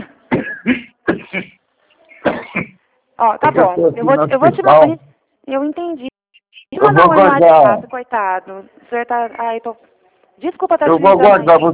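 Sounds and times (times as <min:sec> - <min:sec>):
person coughing after choking: 0:00.0 - 0:02.8
speech: 0:03.2 - 0:06.1, 0:06.8 - 0:11.7.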